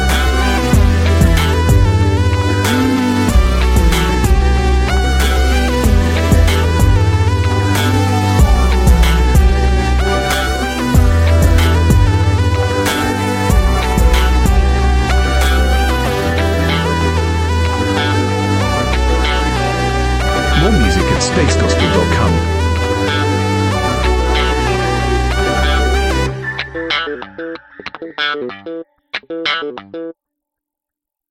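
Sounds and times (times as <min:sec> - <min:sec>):
instrumental music: 0:00.0 - 0:28.8.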